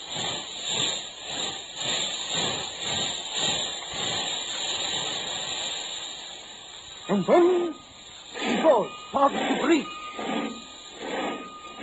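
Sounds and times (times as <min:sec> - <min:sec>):
steam train hissing to a stop: 0:00.0 - 0:11.8
speech: 0:07.1 - 0:07.8, 0:08.4 - 0:10.5.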